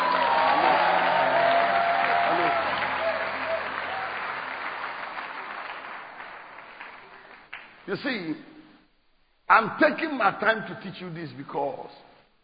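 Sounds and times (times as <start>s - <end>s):
audience clapping and shouting: 0.0s - 7.8s
speech: 7.9s - 8.5s, 9.5s - 12.1s.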